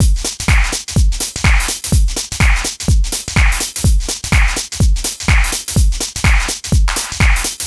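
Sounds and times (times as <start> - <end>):
lounge house music loop: 0.0 - 7.6.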